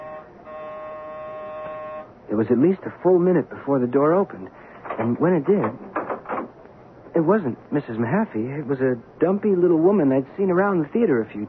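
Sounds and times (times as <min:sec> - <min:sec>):
apartment doorbell buzzer: 0:00.0 - 0:02.1
low hiss: 0:00.0 - 0:11.4
speech: 0:02.3 - 0:05.9, 0:07.2 - 0:11.4.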